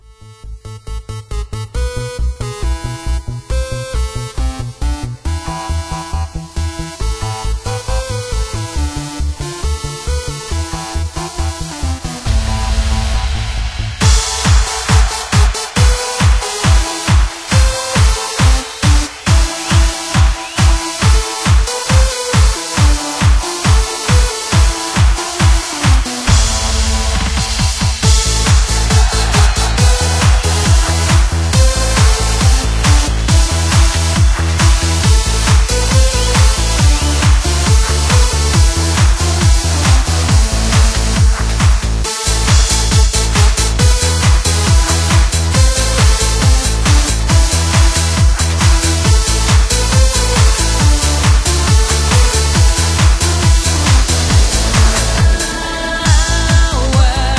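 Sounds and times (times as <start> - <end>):
Russian dance music radio edit: 0.0 - 57.3.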